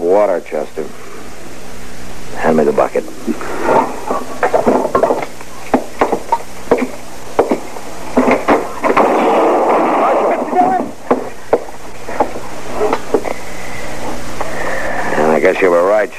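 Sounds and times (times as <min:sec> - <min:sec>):
constant hissing background: 0:00.0 - 0:16.1
speech: 0:00.2 - 0:01.0, 0:02.4 - 0:03.9, 0:15.6 - 0:16.1
burst of gunfire: 0:08.2 - 0:11.4.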